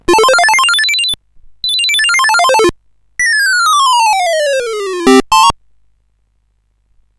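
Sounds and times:
music box melody on SID CSG8580R5 chip: 0:00.1 - 0:05.5.

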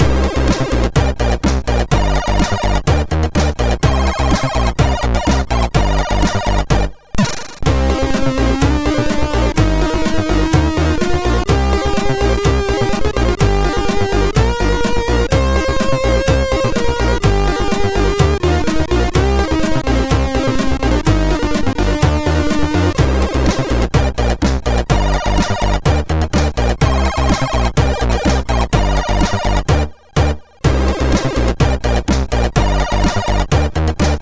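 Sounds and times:
funk music on MOS6581R2 chip: 0:00.0 - 0:34.2.

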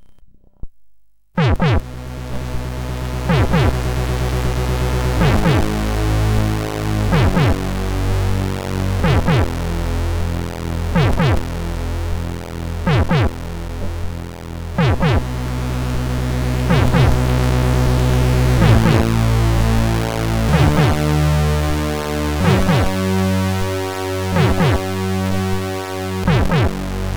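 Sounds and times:
SID CSG8580R5 chip tune: 0:01.4 - 0:27.0.

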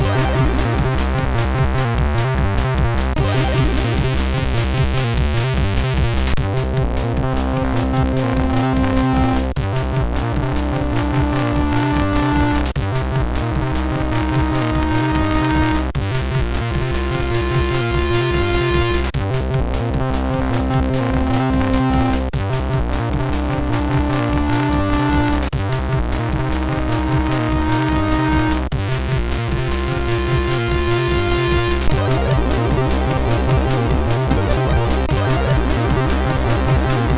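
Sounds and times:
industrial music on a MOS6581R3 sound chip: 0:00.0 - 0:37.1.

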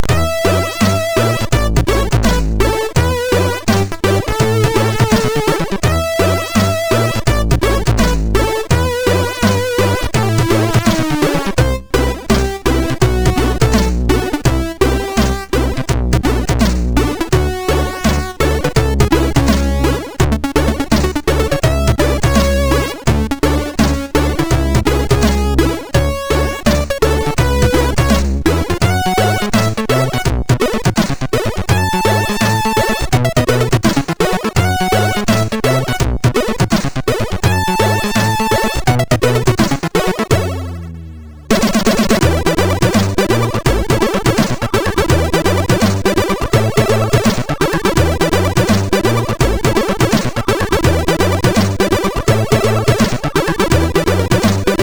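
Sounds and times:
MOS6581R2 funk: 0:00.0 - 0:54.8.

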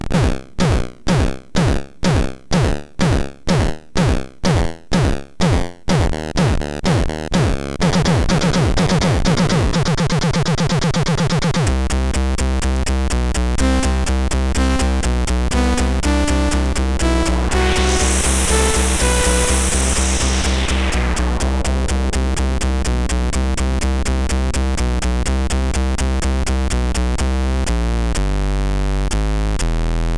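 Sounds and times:
chiptune music on a MOS6581R4 chip: 0:00.2 - 0:30.0.

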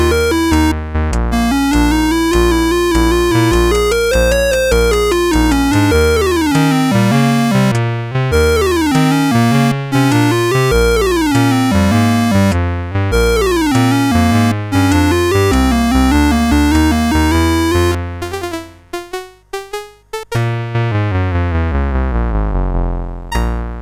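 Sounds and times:
chiptune music on a CSG8580R5 chip: 0:00.0 - 0:23.8.

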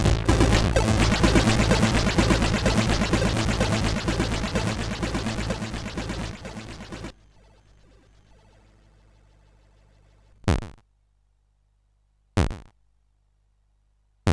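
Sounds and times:
SID chip hymn: 0:00.0 - 0:10.2.

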